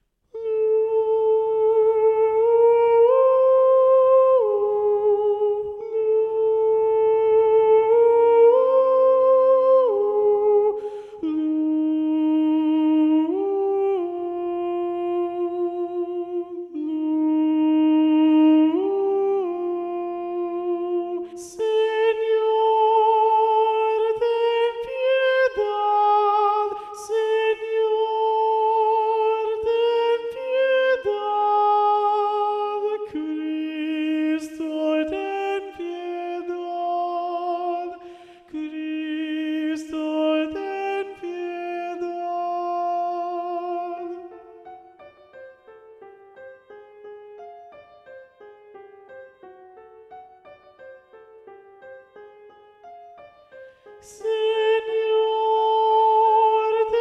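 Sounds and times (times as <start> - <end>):
predominant treble voice singing: 0.3 - 47.4, 53.5 - 57.0.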